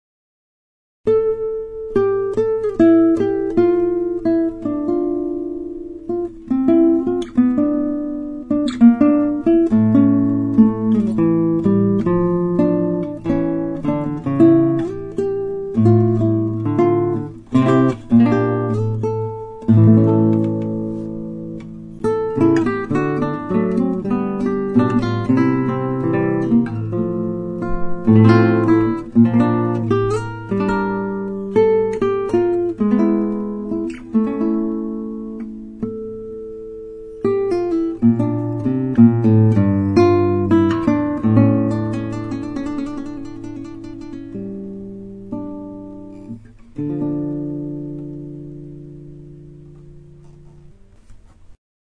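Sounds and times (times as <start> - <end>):
guitar prelude: 1.1 - 51.3.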